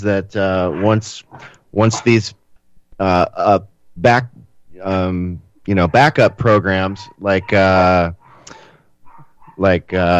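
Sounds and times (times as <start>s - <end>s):
speech: 0.0s - 2.4s, 3.0s - 8.2s, 9.6s - 10.1s
dog barking: 5.7s - 8.4s, 9.0s - 9.6s.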